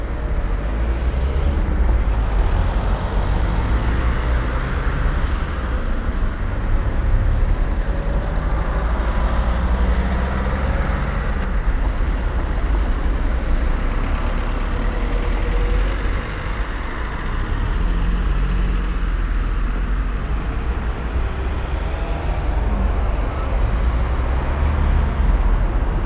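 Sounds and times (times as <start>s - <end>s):
crossroad traffic noise: 0.0s - 26.0s.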